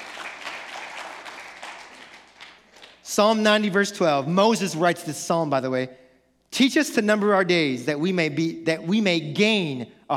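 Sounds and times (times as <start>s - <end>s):
audience clapping hands: 0.0s - 3.2s
speech: 3.1s - 6.0s, 6.6s - 10.1s.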